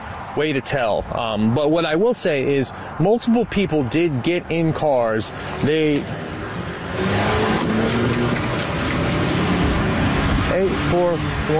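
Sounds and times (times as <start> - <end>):
speech: 0.4 - 6.3, 10.6 - 11.5
small SUV accelerating toward a person: 5.2 - 11.5.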